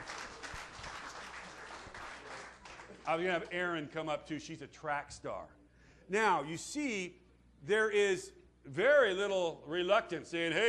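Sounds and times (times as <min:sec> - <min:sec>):
audience applause: 0:00.0 - 0:03.2
speech: 0:03.1 - 0:10.6.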